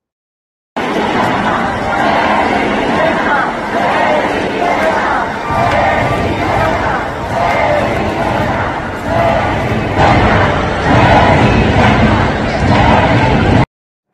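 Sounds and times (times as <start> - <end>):
crowd of thousands chanting in auditorium: 0.8 - 13.7.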